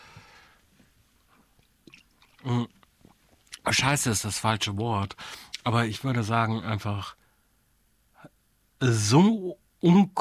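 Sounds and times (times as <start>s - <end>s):
small mouth and handling noises: 1.3s - 3.7s
gulp of beer: 1.8s - 3.6s
speech: 2.4s - 2.8s, 3.7s - 7.2s, 8.8s - 10.1s.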